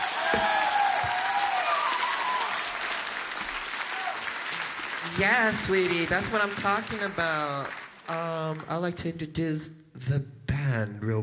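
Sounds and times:
crowd clapping and cheering: 0.0s - 8.8s
speech: 5.2s - 11.2s.

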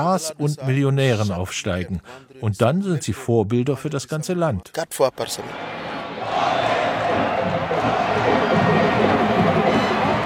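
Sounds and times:
speech: 0.0s - 5.9s
stadium crowd singing and chanting: 5.4s - 10.2s
drumming: 6.2s - 10.2s.

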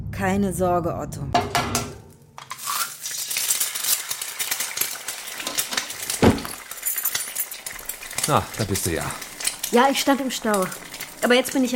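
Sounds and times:
speech: 0.1s - 1.8s, 8.2s - 11.7s
dishes, glass and cutlery clinking: 4.4s - 11.6s.

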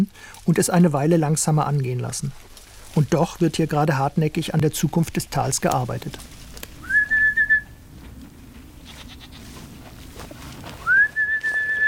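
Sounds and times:
speech: 0.0s - 6.4s
rustling: 0.2s - 11.8s
shepherd whistling to call his herd: 6.8s - 7.8s, 10.8s - 11.8s
faint animal bleats: 8.7s - 10.0s.

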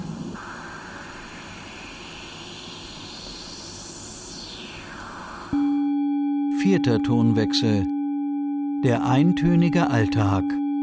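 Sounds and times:
noise through a resonant filter: 0.0s - 6.0s
speech: 6.6s - 7.9s, 8.8s - 10.6s.

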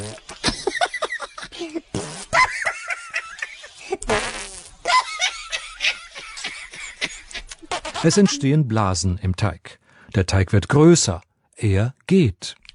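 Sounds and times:
fart sound effect: 0.0s - 0.4s, 1.9s - 2.4s, 4.0s - 4.9s
laughter: 0.3s - 4.1s, 4.9s - 8.7s
speech: 8.0s - 12.6s.

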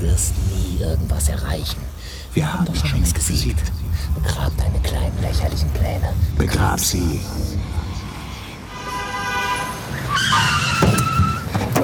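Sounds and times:
car engine rumble: 0.0s - 8.9s
speech: 0.2s - 7.8s
car skidding to a halt: 9.2s - 11.8s.

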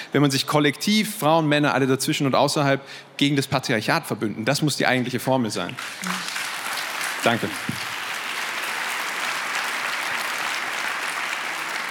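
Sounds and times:
speech: 0.1s - 6.3s, 7.2s - 7.8s
audience applause: 5.8s - 11.8s.

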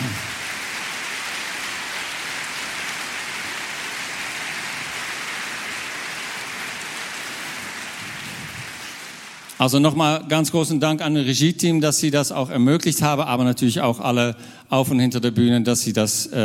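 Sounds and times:
audience applause: 0.0s - 9.8s
speech: 9.6s - 16.4s.

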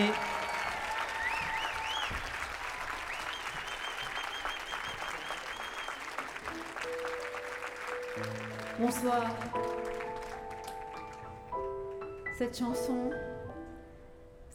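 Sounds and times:
concert audience applauding a singer: 0.0s - 12.1s
audience whistles: 0.4s - 6.2s
speech: 8.8s - 9.7s, 12.4s - 13.3s.

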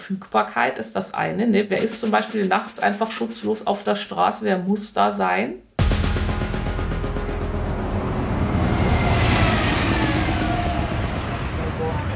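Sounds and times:
speech: 0.1s - 5.7s
vehicle surging louder: 5.8s - 12.1s
loud city road traffic: 6.3s - 12.1s.

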